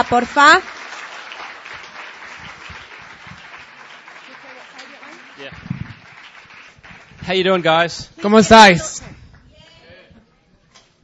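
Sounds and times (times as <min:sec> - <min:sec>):
speech: 0:00.0 - 0:00.7, 0:07.2 - 0:09.2
audience applause welcoming a speaker at a bilingual Spanish and English event: 0:00.0 - 0:08.8.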